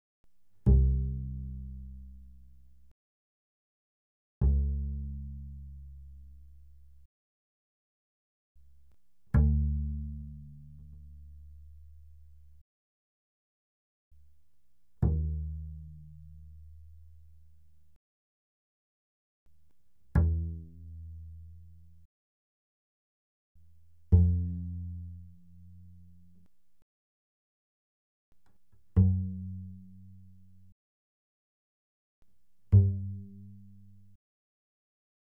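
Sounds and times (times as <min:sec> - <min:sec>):
double bass pizzicato fortissimo on the A string: 0:00.6 - 0:02.9, 0:04.4 - 0:07.1, 0:09.3 - 0:12.6, 0:15.0 - 0:17.3, 0:20.1 - 0:22.1, 0:23.9 - 0:26.4, 0:28.8 - 0:30.7, 0:32.7 - 0:34.2.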